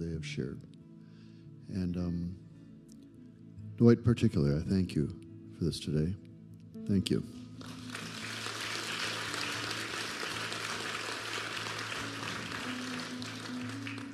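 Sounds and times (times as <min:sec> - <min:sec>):
speech: 0:00.2 - 0:00.7, 0:01.7 - 0:02.4, 0:03.8 - 0:06.2, 0:06.9 - 0:07.4
audience clapping: 0:07.6 - 0:14.1.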